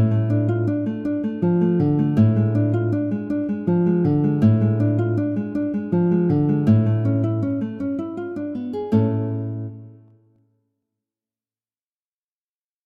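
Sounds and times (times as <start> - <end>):
lute prelude: 0.0 - 10.2.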